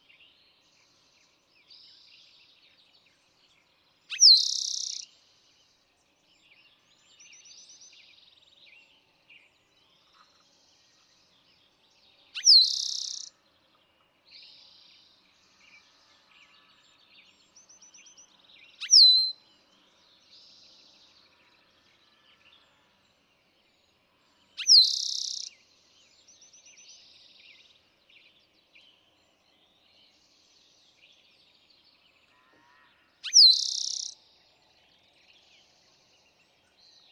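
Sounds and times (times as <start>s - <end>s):
Eastern towhee singing: 4.1s - 5.0s, 12.4s - 13.3s, 18.8s - 19.3s, 24.6s - 25.6s, 33.2s - 34.2s.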